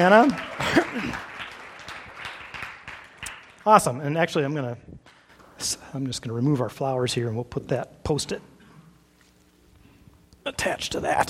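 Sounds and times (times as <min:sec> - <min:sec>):
speech: 0:00.0 - 0:01.3, 0:03.6 - 0:05.0, 0:05.6 - 0:08.5, 0:10.5 - 0:11.2
audience applause for the first artist: 0:00.0 - 0:03.6.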